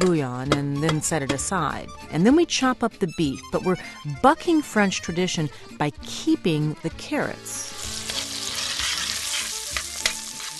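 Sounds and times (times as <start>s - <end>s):
speech: 0.0s - 8.0s
sausage sizzling in a frying pan for a French shepherd's pie: 7.5s - 10.5s.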